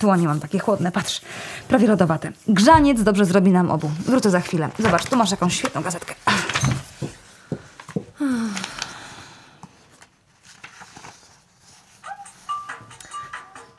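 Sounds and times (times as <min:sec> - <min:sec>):
speech: 0:00.0 - 0:06.8
telephone ringing: 0:12.4 - 0:13.7.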